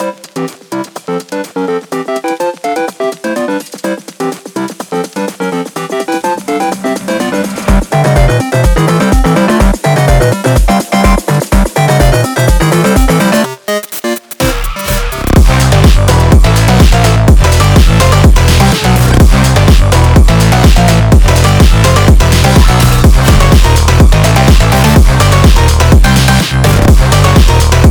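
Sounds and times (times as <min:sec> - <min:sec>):
phonk beat: 0:00.0 - 0:27.8.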